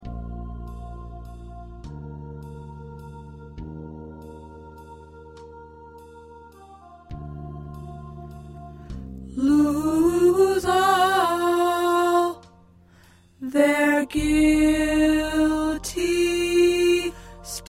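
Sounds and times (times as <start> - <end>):
tenor singing: 9.3 - 12.5, 13.4 - 17.6.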